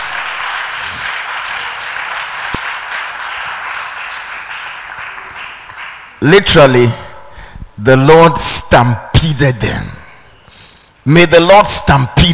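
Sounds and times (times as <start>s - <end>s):
audience clapping: 0.0s - 6.3s
speech: 6.2s - 7.0s, 7.8s - 10.0s, 11.1s - 12.3s.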